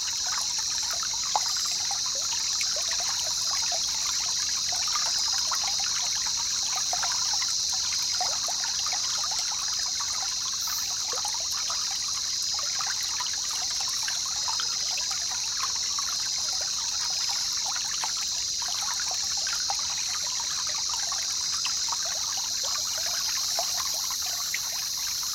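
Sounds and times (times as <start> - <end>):
wilderness jungle river in a rainforest: 0.0 - 25.3.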